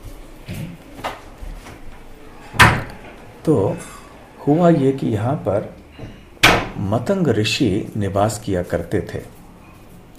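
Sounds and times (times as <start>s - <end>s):
door being shut: 2.5s - 3.2s, 6.0s - 6.8s
speech: 3.4s - 6.2s, 6.8s - 9.4s.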